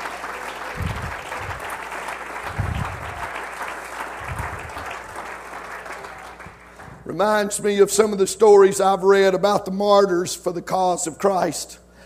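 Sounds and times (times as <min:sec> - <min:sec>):
audience clapping hands: 0:00.0 - 0:07.1
speech: 0:07.2 - 0:11.8.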